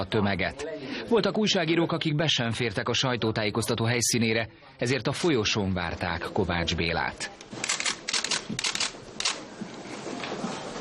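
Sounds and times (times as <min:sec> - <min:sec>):
speech: 0:00.0 - 0:07.8, 0:08.5 - 0:08.8
camera shutters clicking: 0:07.4 - 0:09.4.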